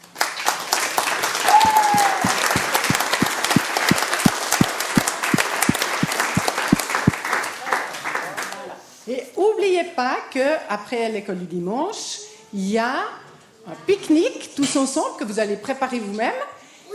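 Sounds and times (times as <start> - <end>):
audience applause: 0.0 - 8.6
speech: 10.0 - 16.6.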